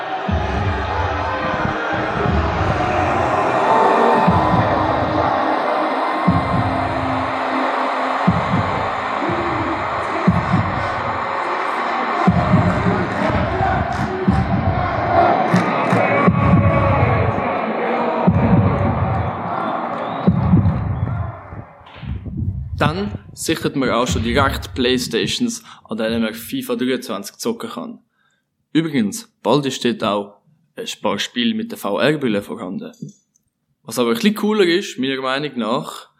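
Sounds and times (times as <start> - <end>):
football crowd cheering and chanting: 0.0 - 21.9
deep heartbeat: 0.1 - 3.5, 4.2 - 5.4, 6.3 - 7.4, 8.3 - 11.4, 12.3 - 15.6, 16.2 - 17.4, 18.3 - 19.6, 20.2 - 23.4, 24.1 - 25.4
speech: 23.4 - 28.1, 28.7 - 33.2, 33.8 - 36.1.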